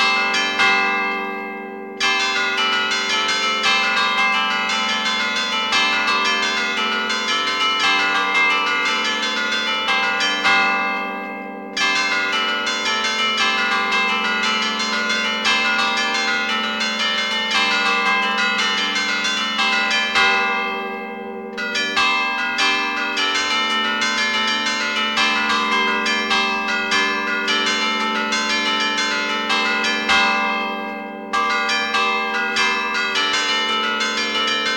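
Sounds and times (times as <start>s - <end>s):
five church bells ringing music in six-eight time: 0.0s - 34.7s.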